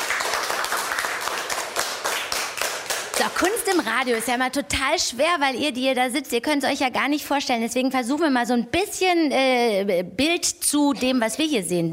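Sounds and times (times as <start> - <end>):
audience applause at a live German-language event: 0.0 - 4.5
speech: 3.2 - 11.9.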